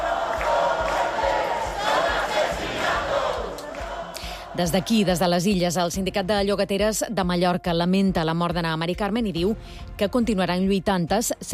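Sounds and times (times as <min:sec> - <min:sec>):
protest crowd shouting chants: 0:00.0 - 0:05.2
speech: 0:04.6 - 0:11.5.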